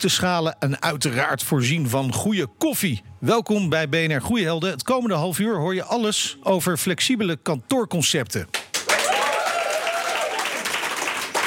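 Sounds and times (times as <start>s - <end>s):
speech: 0.0s - 8.7s
live audience applauding: 8.6s - 11.4s
faint cheering: 8.9s - 11.4s.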